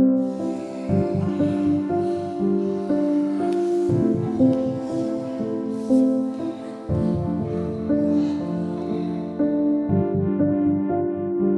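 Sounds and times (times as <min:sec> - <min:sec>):
tantra music: 0:00.2 - 0:11.4.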